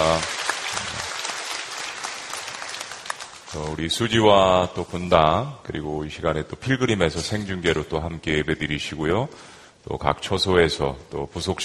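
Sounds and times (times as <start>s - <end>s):
audience applauding: 0.0s - 3.8s
speech: 3.5s - 11.6s.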